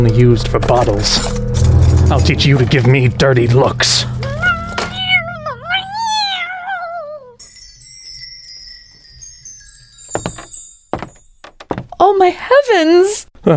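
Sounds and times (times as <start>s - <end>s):
speech: 0.0s - 4.2s, 12.2s - 13.5s
cat yowling in pain: 4.2s - 7.4s.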